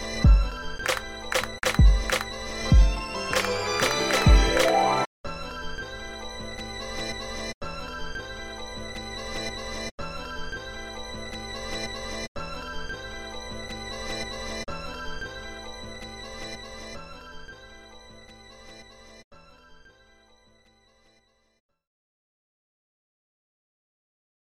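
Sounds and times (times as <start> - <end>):
instrumental music: 0.0 - 19.0.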